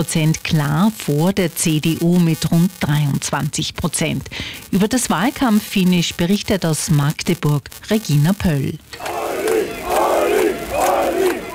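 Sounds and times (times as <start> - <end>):
speech: 0.0 - 9.2
fans chanting and cheering for the AfD lead candidate at a Magdeburg election rally: 8.9 - 11.5.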